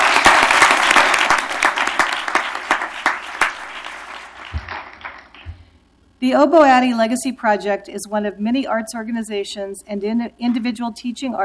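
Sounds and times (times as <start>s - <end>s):
audience applause: 0.0s - 5.6s
speech: 6.2s - 11.4s.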